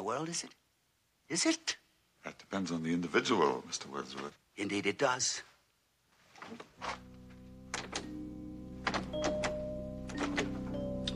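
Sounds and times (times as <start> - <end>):
speech: 0.1 - 0.6, 1.3 - 5.5, 6.4 - 7.1, 8.8 - 9.4
door being locked: 7.7 - 8.2, 8.8 - 11.0.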